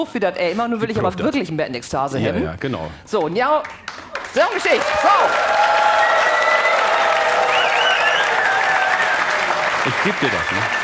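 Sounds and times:
speech: 0.0 - 6.1, 9.8 - 10.8
applause: 3.2 - 10.8.

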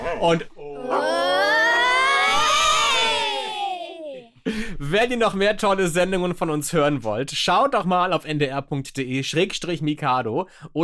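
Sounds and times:
speech: 0.1 - 0.6, 4.9 - 10.8
audience of children cheering a Mexican wave: 0.8 - 4.3.

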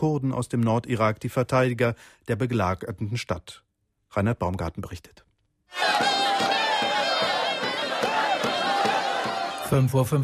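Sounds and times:
speech: 0.0 - 6.2, 9.7 - 10.2
Turkish Kurds cheering arriving Peshmerga at the Habur border crossing: 5.7 - 9.9.

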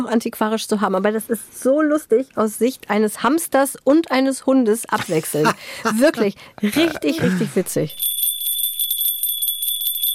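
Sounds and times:
speech: 0.0 - 8.1
laughter: 5.0 - 7.8
shop door bell jingling: 7.9 - 10.1.

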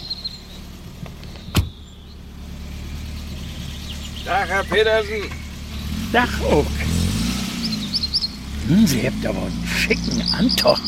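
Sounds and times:
taxi arriving: 2.2 - 10.1
speech: 4.3 - 5.4, 6.1 - 6.9, 8.7 - 10.8.

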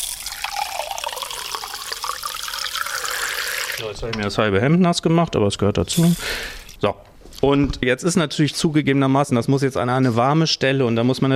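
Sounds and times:
water pouring into a glass: 0.0 - 3.8
speech: 3.8 - 11.3.

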